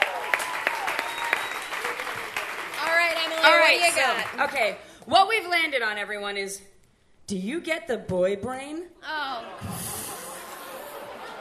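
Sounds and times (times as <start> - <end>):
audience applause: 0.0 - 4.5
speech: 3.4 - 6.7, 7.3 - 9.7
laughter: 9.2 - 11.3.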